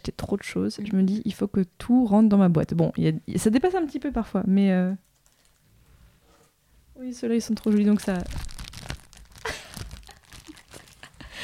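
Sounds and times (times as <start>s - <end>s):
speech: 0.0s - 5.1s, 7.0s - 8.5s
paper stationery and masking tape handled for a journal in ASMR: 7.5s - 11.2s.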